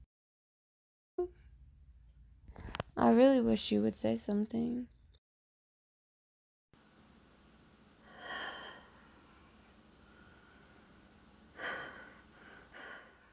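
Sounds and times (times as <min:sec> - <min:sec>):
speech: 0:01.2 - 0:01.4, 0:03.0 - 0:04.9
person breathing: 0:08.0 - 0:13.3.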